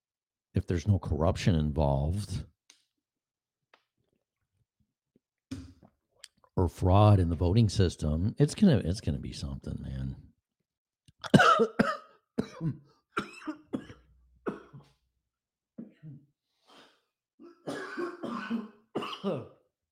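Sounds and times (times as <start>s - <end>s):
speech: 0.6s - 2.5s, 6.6s - 10.3s, 11.2s - 13.3s
person coughing after water went down the wrong pipe: 11.2s - 14.9s, 15.8s - 19.6s.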